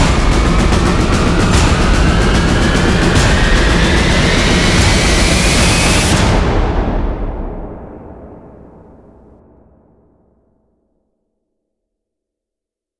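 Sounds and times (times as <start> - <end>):
drums: 0.0 - 9.4.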